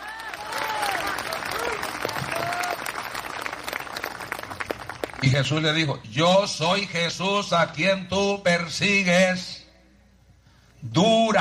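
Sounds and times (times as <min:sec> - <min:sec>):
audience applause: 0:00.0 - 0:05.3
speech: 0:05.2 - 0:09.6, 0:10.9 - 0:11.3.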